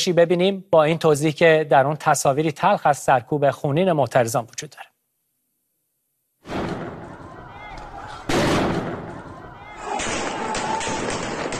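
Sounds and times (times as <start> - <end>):
speech: 0.0 - 4.9
gunshots: 6.4 - 11.5.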